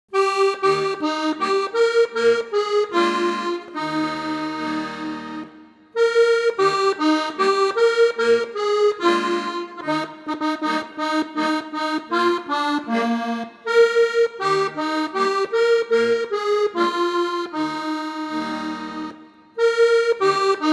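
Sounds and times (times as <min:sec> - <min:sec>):
instrumental music: 0:00.1 - 0:20.7.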